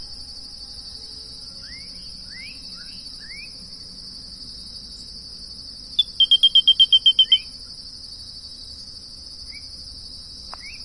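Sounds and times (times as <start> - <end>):
sana do capim frog croaking: 6.0 - 7.5.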